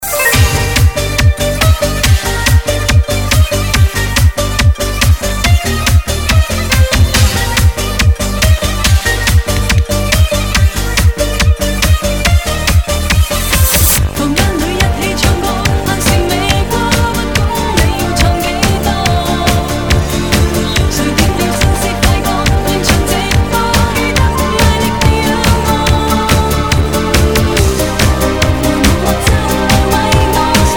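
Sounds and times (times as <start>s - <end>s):
dance music with ghaita: 0.0s - 30.7s.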